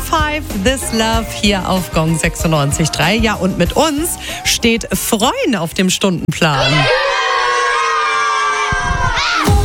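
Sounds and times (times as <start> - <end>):
speech: 0.3 - 7.2
schoolchildren cheering and shouting in a classroom: 6.5 - 9.6.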